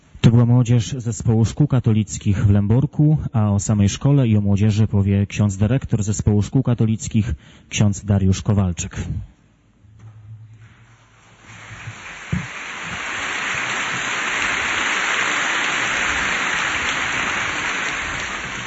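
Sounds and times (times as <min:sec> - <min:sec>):
speech: 0:00.4 - 0:09.3
audience applause: 0:11.2 - 0:18.6.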